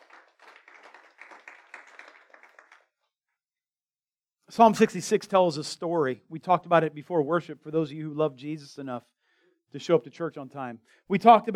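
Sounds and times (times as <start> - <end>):
crowd clapping: 0.0 - 3.1
speech: 4.5 - 9.1, 9.7 - 11.5.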